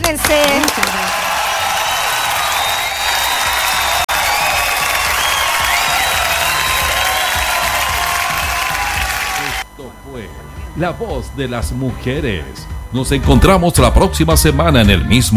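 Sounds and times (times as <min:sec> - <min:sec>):
audience applause: 0:00.0 - 0:09.6
speech: 0:00.1 - 0:01.2, 0:10.8 - 0:15.3.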